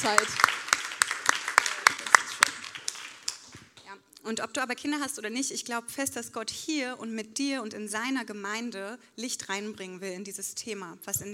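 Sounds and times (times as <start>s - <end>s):
speech: 0.0s - 0.6s, 4.2s - 11.3s
applause at a church service: 0.0s - 3.9s.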